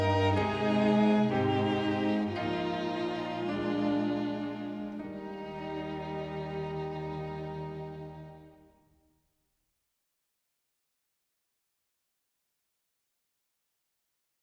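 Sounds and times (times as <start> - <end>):
music: 0.0 - 9.2.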